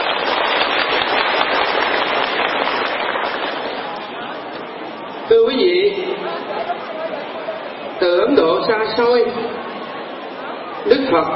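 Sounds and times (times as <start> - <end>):
audience applause: 0.0 - 4.1
speech: 5.4 - 6.0, 8.0 - 9.6, 10.8 - 11.3.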